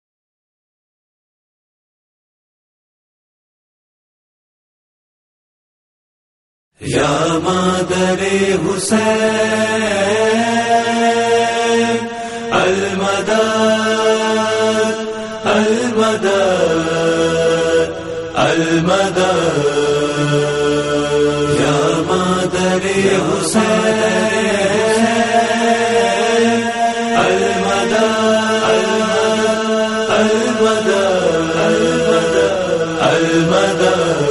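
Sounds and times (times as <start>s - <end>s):
noha lament recitation: 6.8s - 34.2s.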